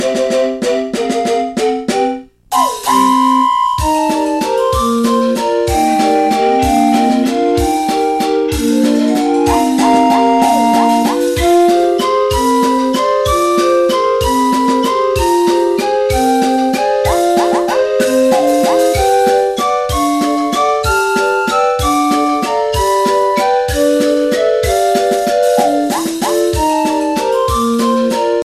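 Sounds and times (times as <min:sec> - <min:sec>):
toy train theme music: 0:00.0 - 0:28.4.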